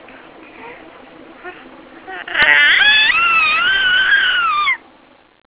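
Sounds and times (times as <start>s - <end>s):
person squealing in delight: 2.2s - 4.8s.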